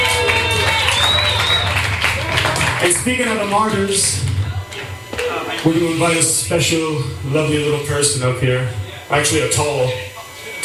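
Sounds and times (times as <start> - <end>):
concert audience applauding at a tribute show: 0.0 - 5.8
crowd voices: 0.0 - 10.6
sustained tones: 0.0 - 10.6
speech: 2.9 - 4.3, 5.2 - 10.6.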